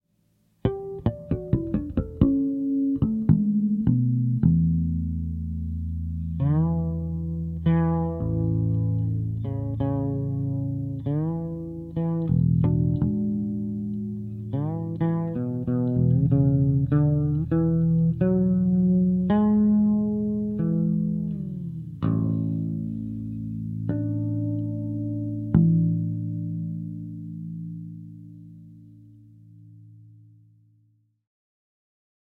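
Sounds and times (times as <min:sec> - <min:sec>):
fretless bass: 0:00.4 - 0:30.7.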